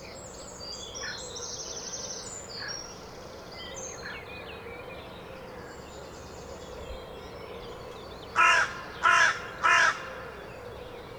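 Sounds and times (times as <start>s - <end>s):
carrion crow rasping caws: 8.4s - 10.4s.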